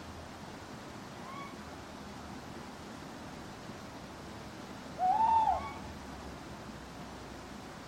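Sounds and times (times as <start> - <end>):
faint hiss: 0.0 - 7.8
owl hooting: 5.0 - 5.8.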